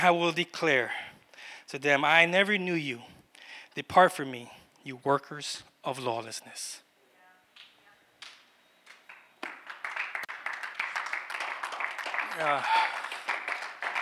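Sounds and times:
speech: 0.0 - 1.1, 1.7 - 3.2, 3.8 - 6.8, 12.4 - 12.8
audience clapping: 8.2 - 14.0
person whooping: 12.3 - 13.3.

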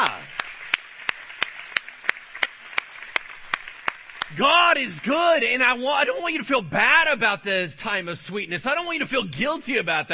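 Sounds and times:
round of applause: 0.0 - 6.1
speech: 4.4 - 10.1.

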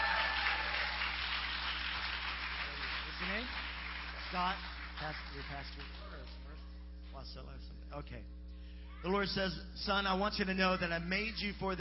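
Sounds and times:
audience hand clapping: 0.0 - 6.6
speech: 4.3 - 8.4, 9.0 - 11.7.

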